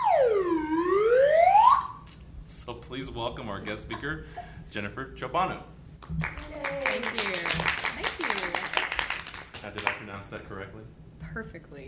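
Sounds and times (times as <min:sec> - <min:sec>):
slide whistle: 0:00.0 - 0:02.1
speech: 0:03.0 - 0:07.8, 0:09.6 - 0:11.8.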